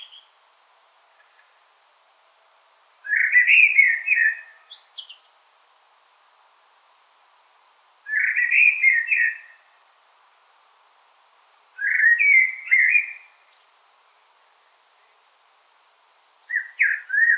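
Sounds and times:
Common blackbird singing: 0:00.0 - 0:00.4, 0:03.1 - 0:05.2, 0:08.1 - 0:09.6, 0:11.8 - 0:13.5, 0:16.5 - 0:17.3.

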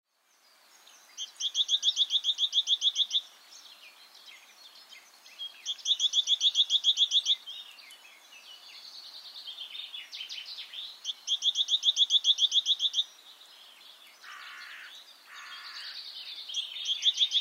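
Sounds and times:
great tit calls: 0:01.1 - 0:03.4, 0:05.4 - 0:07.5, 0:10.1 - 0:13.2, 0:14.2 - 0:17.3.

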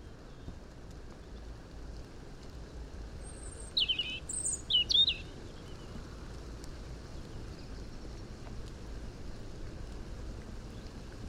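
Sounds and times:
steady background noise: 0:00.0 - 0:11.2
robin-like bird twittering: 0:03.4 - 0:05.3.

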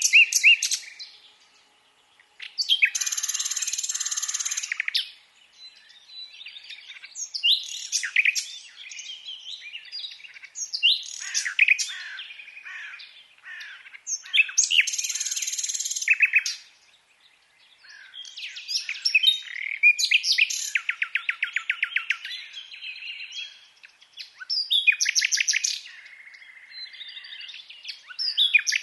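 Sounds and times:
common nightingale singing: 0:00.0 - 0:28.8.

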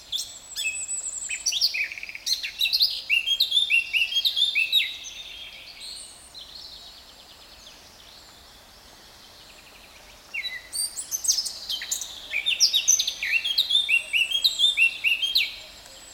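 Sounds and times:
Eurasian blackcap Sylvia atricapilla warbling song: 0:00.1 - 0:06.0, 0:10.4 - 0:16.1.

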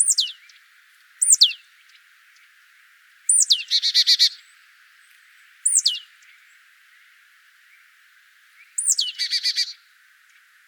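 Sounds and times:
marsh tit Poecile palustris pitchoo and dee calls: 0:00.0 - 0:00.5, 0:01.2 - 0:02.0, 0:03.3 - 0:04.4, 0:05.6 - 0:06.1, 0:08.8 - 0:09.8.

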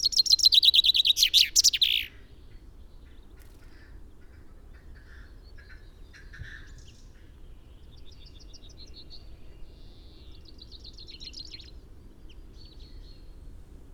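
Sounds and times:
Common chaffinch Fringilla coelebs singing a fast run of chips ending in a flourish: 0:00.0 - 0:02.1.

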